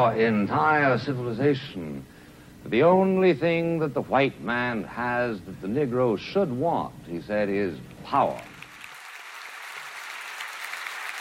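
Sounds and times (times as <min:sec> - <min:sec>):
speech: 0:00.0 - 0:08.5
audience applause in a grand hall at a New York City Public Library event: 0:08.4 - 0:11.1.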